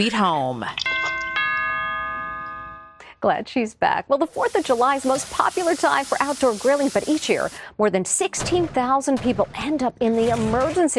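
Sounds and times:
speech: 0:00.0 - 0:00.9, 0:03.2 - 0:10.9
doorbell ringing: 0:00.9 - 0:03.0.

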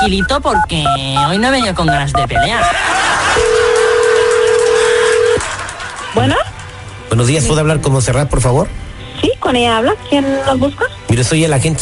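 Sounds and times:
speech: 0:00.0 - 0:03.5, 0:06.2 - 0:06.5, 0:07.1 - 0:11.7
telephone dialing tones: 0:03.4 - 0:05.4.

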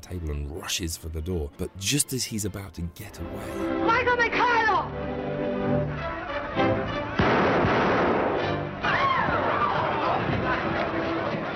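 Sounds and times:
speech: 0:00.0 - 0:07.0
music: 0:00.0 - 0:11.5
crowd commotion: 0:05.7 - 0:11.5
gunshot: 0:07.2 - 0:09.4.

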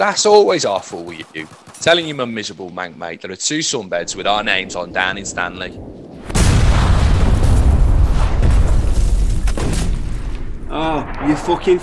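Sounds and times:
speech: 0:00.0 - 0:06.0, 0:10.7 - 0:11.8
ordnance explosion: 0:04.0 - 0:11.8.

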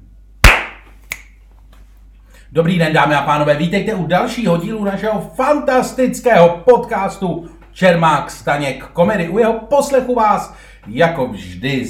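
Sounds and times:
single sharp hand clap: 0:00.4 - 0:01.3
speech: 0:02.5 - 0:11.8.

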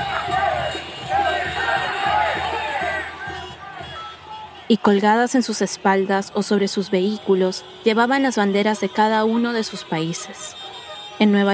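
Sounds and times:
large protest crowd shouting and chanting: 0:00.0 - 0:11.5
speech: 0:04.7 - 0:10.6, 0:11.2 - 0:11.5.

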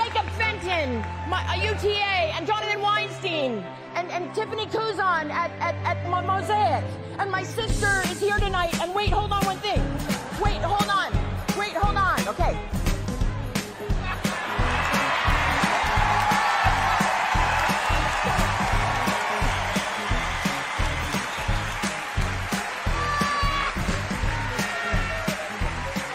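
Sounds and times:
audience clapping: 0:00.0 - 0:02.0, 0:13.6 - 0:26.1
speech: 0:00.8 - 0:12.8.

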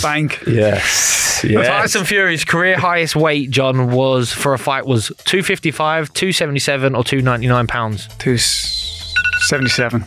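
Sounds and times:
speech: 0:00.0 - 0:08.8, 0:09.4 - 0:10.0
electronic quiz buzzer going off: 0:09.1 - 0:10.0.

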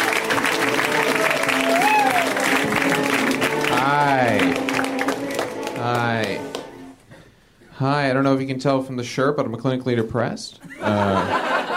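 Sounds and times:
audience applause and cheering for a comedian at a comedy show: 0:00.0 - 0:06.9
speech: 0:08.3 - 0:11.5
laughter: 0:10.6 - 0:11.7.

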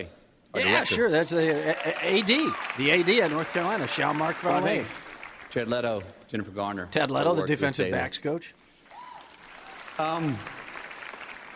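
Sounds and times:
speech: 0:00.0 - 0:08.6, 0:10.0 - 0:10.6
applause: 0:01.2 - 0:06.1, 0:08.8 - 0:11.5.

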